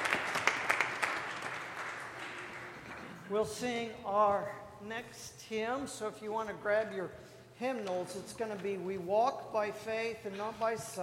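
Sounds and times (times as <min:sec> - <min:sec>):
audience applause: 0:00.0 - 0:03.2
speech: 0:03.3 - 0:11.0.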